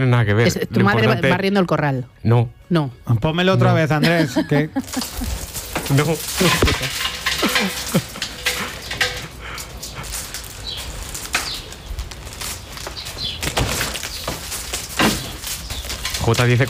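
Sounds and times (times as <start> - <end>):
speech: 0.0 - 8.2, 16.3 - 16.6
laughter: 3.9 - 5.5, 7.4 - 9.8
strip door curtain against flies rattling: 4.8 - 16.6.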